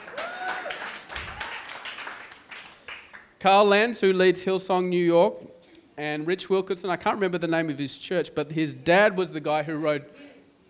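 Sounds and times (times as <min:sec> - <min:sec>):
people clapping: 0:00.0 - 0:03.4
speech: 0:03.4 - 0:10.2.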